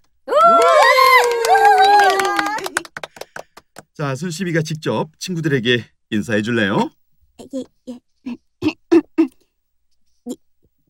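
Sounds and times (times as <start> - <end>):
children applauding to welcome a new friend: 0.3 - 3.8
speech: 4.0 - 8.4.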